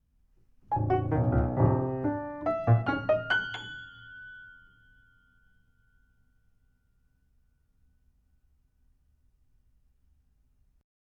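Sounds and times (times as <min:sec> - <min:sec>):
piano: 0:00.5 - 0:06.3.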